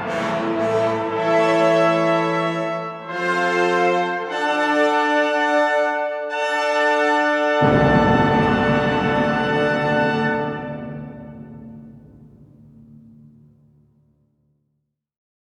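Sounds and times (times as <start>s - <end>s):
fanfare: 0.0s - 11.4s.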